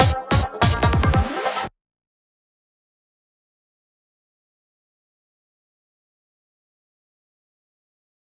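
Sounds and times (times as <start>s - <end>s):
psytrance drum fill: 0.0s - 1.7s.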